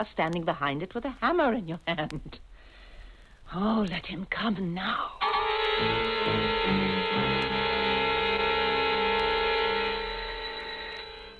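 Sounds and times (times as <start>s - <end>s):
speech: 0.0s - 2.5s, 3.5s - 7.6s
electric doorbell buzzing: 5.2s - 11.3s.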